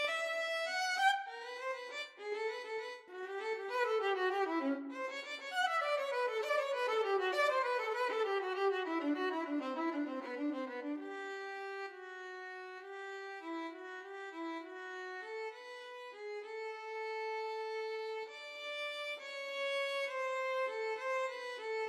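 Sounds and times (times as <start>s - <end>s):
violin playing in a duet with bass: 0.0s - 21.8s.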